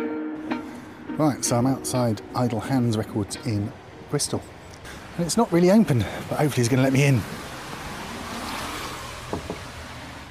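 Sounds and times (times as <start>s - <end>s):
speech: 1.2s - 4.6s, 5.2s - 7.4s
rain outside a shop: 2.5s - 10.2s.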